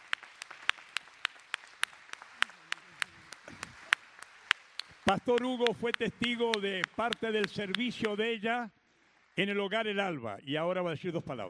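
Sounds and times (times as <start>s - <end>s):
audience applauding: 0.0s - 8.4s
speech: 5.1s - 8.8s, 9.4s - 11.4s.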